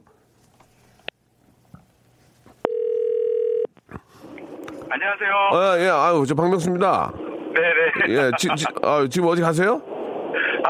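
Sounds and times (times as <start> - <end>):
telephone ringback tone of outgoing call: 2.6 - 3.7
speech: 4.9 - 9.9.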